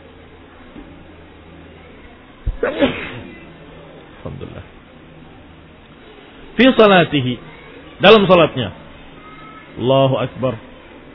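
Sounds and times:
speech: 2.6 - 3.1, 4.2 - 4.8, 6.6 - 8.8, 9.8 - 10.7
person sneezing: 2.6 - 3.3.

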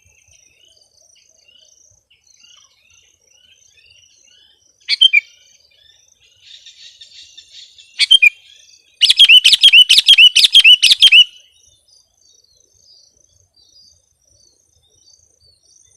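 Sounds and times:
sooty-headed bulbul calling: 4.9 - 5.2, 8.0 - 8.3, 9.0 - 11.4.

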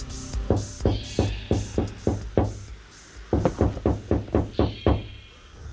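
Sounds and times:
rapid sharp knocking on a glass front door from a veranda: 0.5 - 2.6, 3.3 - 5.1.

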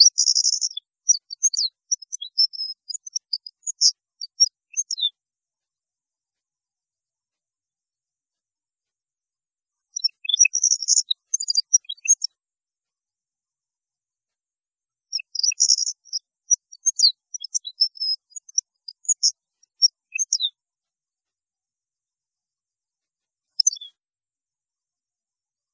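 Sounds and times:
European goldfinch singing: 0.0 - 5.1, 9.9 - 12.3, 15.1 - 20.6, 23.6 - 24.0.

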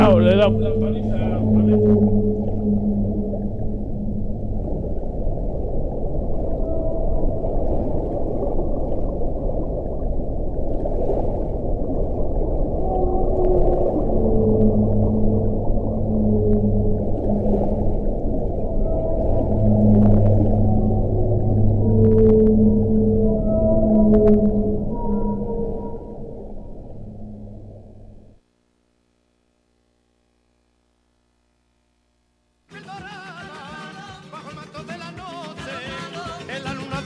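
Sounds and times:
whale vocalization: 0.0 - 10.0, 10.7 - 28.3
speech: 0.4 - 2.9.

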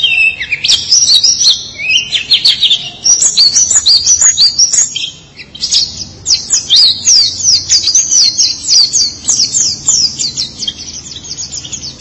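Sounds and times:
white-eye singing: 0.0 - 11.9.

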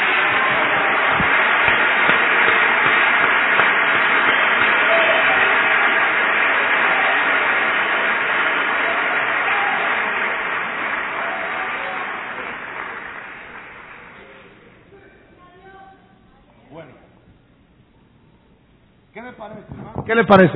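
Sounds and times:
loud applause: 0.0 - 14.8.

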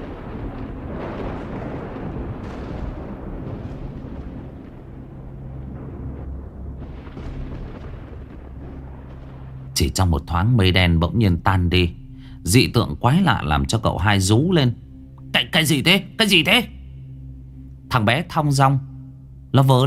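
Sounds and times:
lightning bolt striking a straw effigy thrown into the air: 0.0 - 10.0
straw effigy blowing apart in midair with roaring rumble, crackling bursts and booms: 0.0 - 12.0
speech: 9.8 - 16.8, 17.9 - 18.9, 19.5 - 19.8.

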